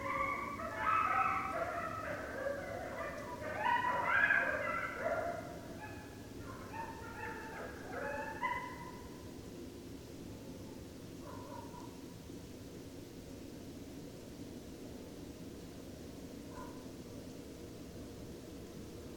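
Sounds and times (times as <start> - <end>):
coyotes howling: 0.0 - 9.1.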